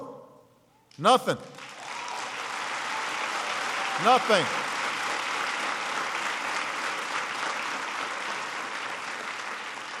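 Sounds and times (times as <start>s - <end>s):
speech: 1.0s - 1.6s, 4.0s - 4.8s
audience applause: 1.5s - 9.9s.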